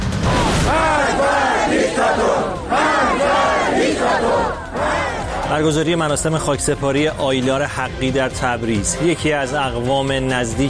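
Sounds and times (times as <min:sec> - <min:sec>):
anti-government protest crowd chanting in unison: 0:00.3 - 0:05.7
speech: 0:05.5 - 0:10.6.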